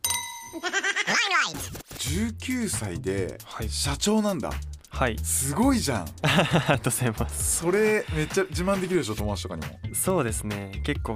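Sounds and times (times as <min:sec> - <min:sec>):
glasses clinking in a toast: 0:00.0 - 0:00.7
speech: 0:00.5 - 0:11.1
laughter: 0:00.6 - 0:01.3, 0:06.2 - 0:08.5.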